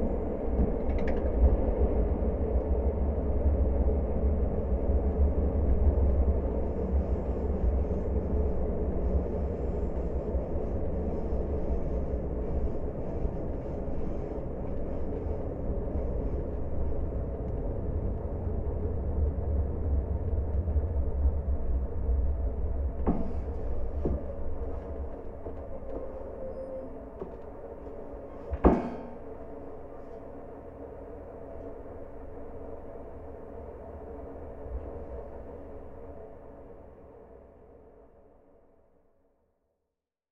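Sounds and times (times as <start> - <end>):
train recorded with a contact microphone: 0.0 - 39.9.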